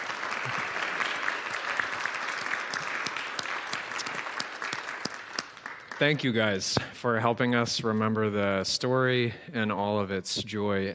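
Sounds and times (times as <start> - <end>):
audience applause: 0.0 - 6.3
speech: 6.0 - 10.9.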